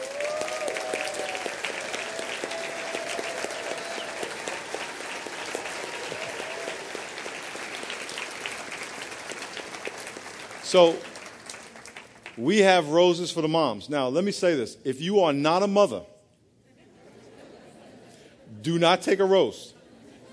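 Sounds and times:
audience applause: 0.0s - 12.4s
speech: 10.7s - 11.1s, 12.4s - 16.1s, 18.6s - 19.8s.

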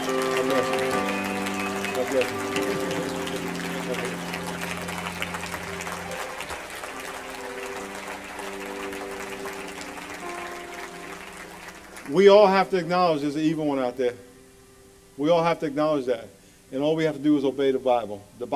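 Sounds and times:
murmuring voices: 0.0s - 8.8s
large crowd clapping: 0.0s - 13.2s
speech: 2.1s - 3.2s, 12.1s - 14.3s, 15.2s - 18.5s.

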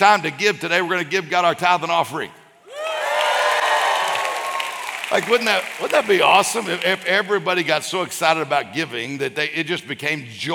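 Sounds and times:
speech: 0.0s - 2.4s, 5.1s - 10.5s
audience cheering: 2.7s - 7.5s.

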